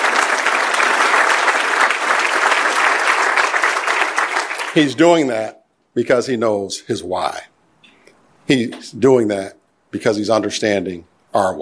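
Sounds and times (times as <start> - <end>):
audience applause: 0.0 - 5.0
speech: 4.8 - 7.5, 8.5 - 11.6.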